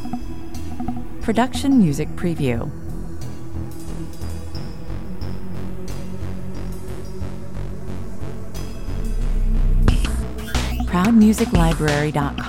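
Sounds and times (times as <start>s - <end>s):
driving pulsing industrial music track with machine effects: 0.0s - 12.4s.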